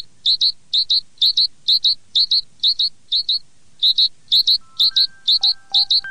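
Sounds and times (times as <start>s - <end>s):
tit bird song: 0.0s - 6.0s.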